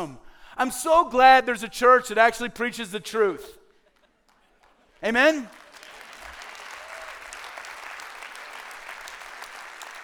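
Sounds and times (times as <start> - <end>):
speech: 0.0 - 3.6, 5.0 - 5.6
polite quiet golf clap from audience: 4.6 - 10.0.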